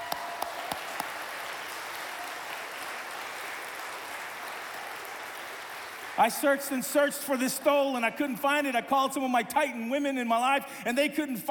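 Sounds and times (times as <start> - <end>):
audience applause: 0.0 - 6.6
speech: 6.2 - 11.4.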